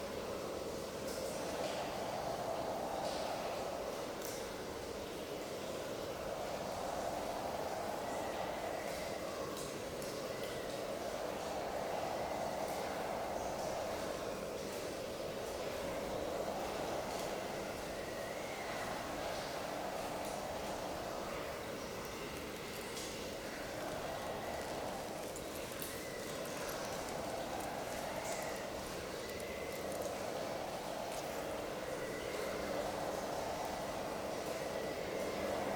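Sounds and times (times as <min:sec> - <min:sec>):
teardrop ice well ambience: 0:00.2 - 0:35.7.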